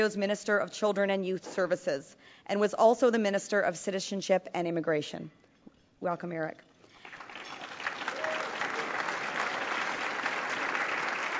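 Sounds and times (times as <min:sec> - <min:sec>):
speech: 0:00.0 - 0:05.4, 0:06.0 - 0:06.7
audience applauding: 0:07.0 - 0:11.3.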